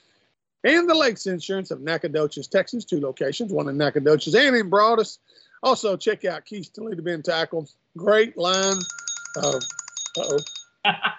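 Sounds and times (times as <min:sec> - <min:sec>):
speech: 0:00.6 - 0:11.1
telephone ringing: 0:08.5 - 0:10.8.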